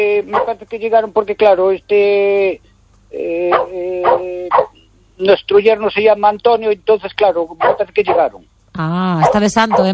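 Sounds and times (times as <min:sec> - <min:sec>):
speech: 0:00.0 - 0:09.9
dog barking and yelping as someone arrives: 0:00.3 - 0:00.6, 0:03.5 - 0:04.8, 0:07.6 - 0:08.4, 0:09.2 - 0:09.9.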